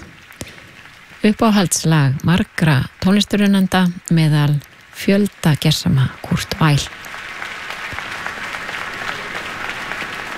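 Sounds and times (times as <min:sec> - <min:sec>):
concert audience applause at the closing concert of an arts festival in Elborg: 0:00.0 - 0:03.7, 0:04.3 - 0:10.3
speech: 0:01.2 - 0:07.1.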